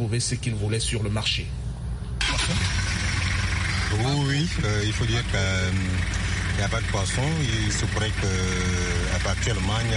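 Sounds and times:
speech: 0.1s - 1.7s, 3.9s - 9.9s
car engine restarting at a market: 1.8s - 9.9s.

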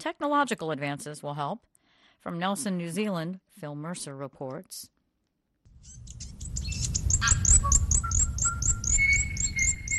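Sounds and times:
speech: 0.0s - 5.0s, 5.8s - 6.3s
native birds singing: 5.8s - 9.9s.

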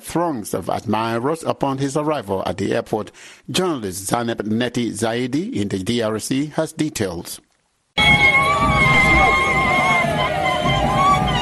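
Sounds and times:
speech: 0.1s - 8.2s
drums: 8.0s - 11.3s.

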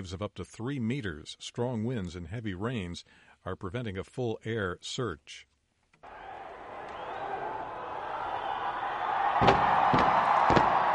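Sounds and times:
speech: 0.0s - 5.5s
cheering crowd: 6.0s - 10.9s
huge New Year fireworks display in New Zealand: 9.4s - 10.9s.

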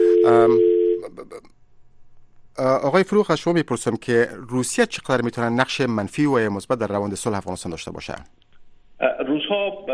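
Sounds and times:
steady electronic telephone tone after a dropped call: 0.0s - 1.0s
speech: 0.3s - 1.6s, 2.6s - 8.4s, 9.0s - 9.9s.

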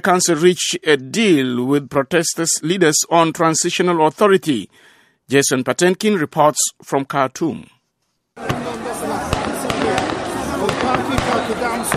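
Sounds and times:
speech: 0.0s - 7.8s, 11.3s - 11.9s
crowd voices and commotion in an outdoor street: 8.4s - 11.9s
gunshots in a city street: 8.4s - 11.9s.

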